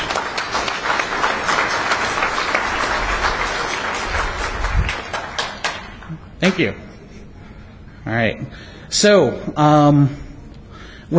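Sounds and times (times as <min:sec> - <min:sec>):
audience clapping: 0:00.0 - 0:06.7
speech: 0:06.4 - 0:06.9, 0:08.1 - 0:10.2.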